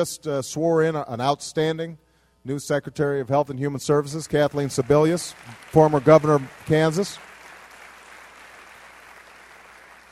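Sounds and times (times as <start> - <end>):
speech: 0.0 - 7.3
audience applause: 4.8 - 10.0.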